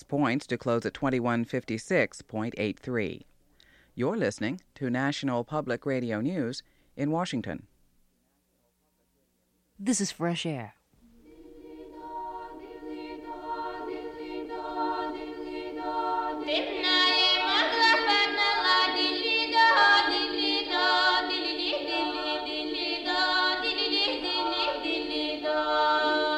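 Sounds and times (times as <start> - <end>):
speech: 0.0 - 3.3, 4.0 - 7.7, 9.8 - 10.8
female vocal choir singing: 11.1 - 26.3.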